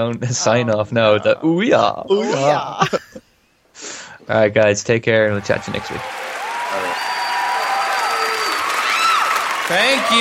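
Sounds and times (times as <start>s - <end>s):
speech: 0.0s - 3.2s, 3.8s - 6.3s, 9.7s - 10.1s
audience clapping: 5.3s - 10.1s
high sustained whistle-like tones: 6.8s - 8.7s.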